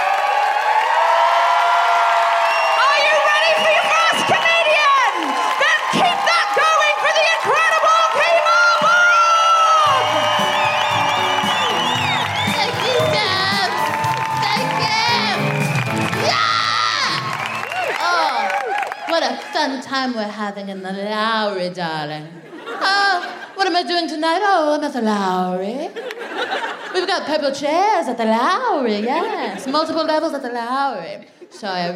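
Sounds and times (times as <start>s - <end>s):
live audience cheering and whooping at a festive show at the Lowry in Salford: 0.0s - 19.8s
speech: 20.2s - 31.9s
laughter: 22.4s - 23.6s, 26.0s - 27.1s.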